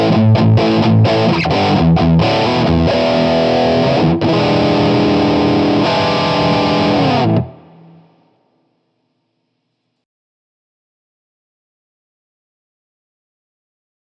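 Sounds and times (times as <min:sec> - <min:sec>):
Marshall DSL overdrive crunch guitar amp distortion: 0:00.0 - 0:08.6.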